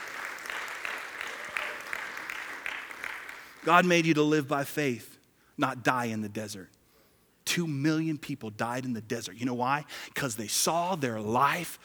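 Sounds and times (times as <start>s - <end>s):
crowd applause: 0.0s - 3.8s
speech: 3.6s - 6.8s, 7.6s - 11.8s.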